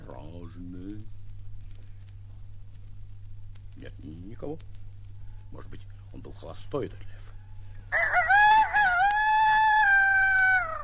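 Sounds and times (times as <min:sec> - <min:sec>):
speech: 0:00.5 - 0:01.2, 0:03.8 - 0:04.8, 0:05.5 - 0:08.1
rooster crowing: 0:07.5 - 0:10.8.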